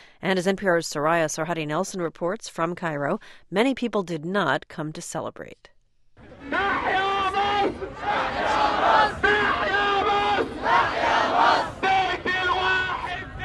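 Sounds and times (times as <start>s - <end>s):
speech: 0.2s - 5.7s
crowd of protesters shouting slogans in unison: 6.3s - 13.4s.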